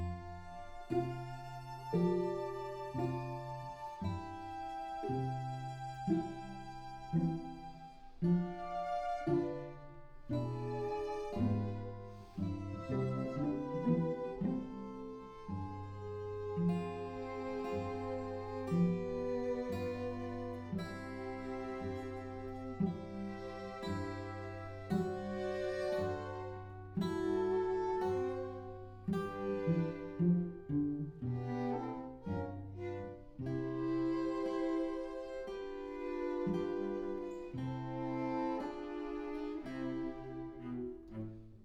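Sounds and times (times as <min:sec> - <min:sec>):
guitar: 0:00.0 - 0:41.6.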